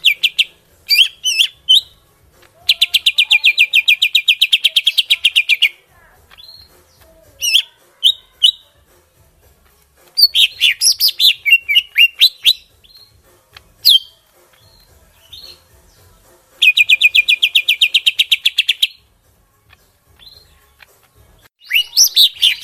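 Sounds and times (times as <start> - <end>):
greater green leafbird song in Kalimantan: 0.0 - 8.8, 10.0 - 19.1, 19.8 - 22.6.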